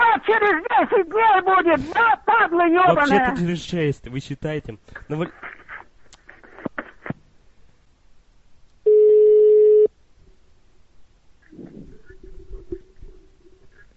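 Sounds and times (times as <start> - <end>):
speech: 0.2 - 5.5
electronic telephone ring from a postman's call: 8.9 - 9.9.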